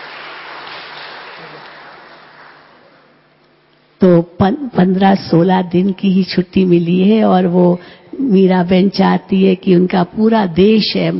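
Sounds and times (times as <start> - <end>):
audience applause: 0.0 - 3.1
speech: 4.0 - 11.1.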